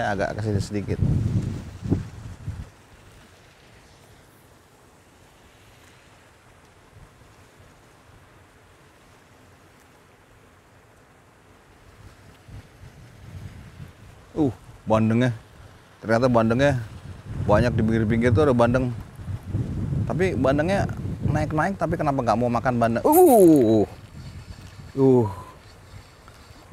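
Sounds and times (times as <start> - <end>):
speech: 0.0 - 2.0, 14.4 - 16.9, 17.5 - 23.8, 25.0 - 25.4
strong wind outdoors: 0.0 - 2.8, 12.0 - 26.1.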